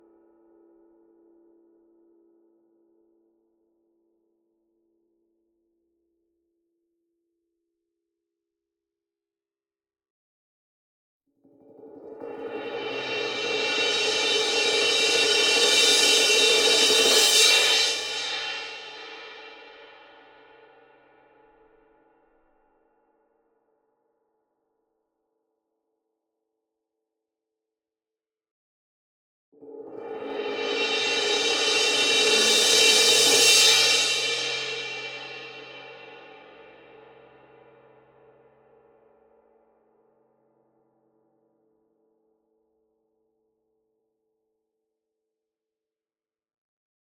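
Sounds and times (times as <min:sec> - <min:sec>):
crash cymbal swell with soft beater: 0:12.8 - 0:19.6, 0:30.5 - 0:36.4.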